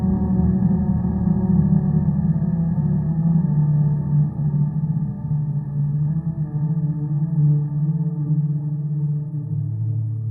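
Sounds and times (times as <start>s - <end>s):
drone: 0.0s - 10.2s.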